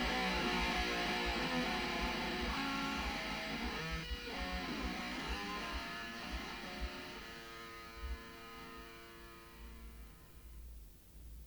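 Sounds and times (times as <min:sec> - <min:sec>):
noise guitar: 0:00.0 - 0:10.9.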